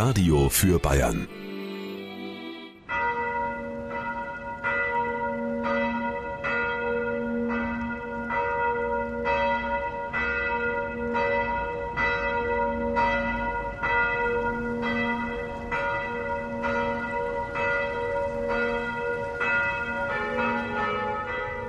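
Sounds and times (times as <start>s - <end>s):
speech: 0.0s - 1.5s
Sunday noon church bells ringing: 0.0s - 21.6s.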